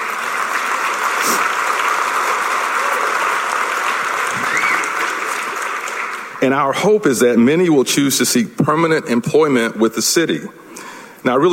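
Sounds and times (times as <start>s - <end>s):
crowd applauding: 0.0s - 6.9s
speech: 6.4s - 11.5s.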